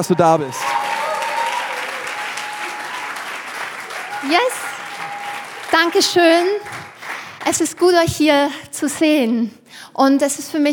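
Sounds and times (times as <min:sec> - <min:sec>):
speech: 0:00.0 - 0:00.8, 0:04.2 - 0:04.6, 0:05.8 - 0:10.7
audience applause: 0:00.0 - 0:07.8.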